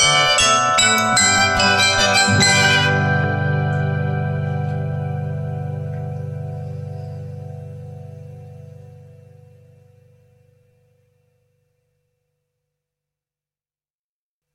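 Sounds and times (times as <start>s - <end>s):
bell ringing a mazurka: 0.0s - 5.6s.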